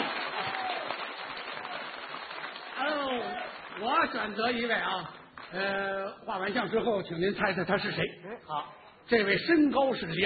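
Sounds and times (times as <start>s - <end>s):
voices cheering: 0.0s - 1.9s
audience applause: 0.0s - 4.4s
speech: 4.0s - 10.2s.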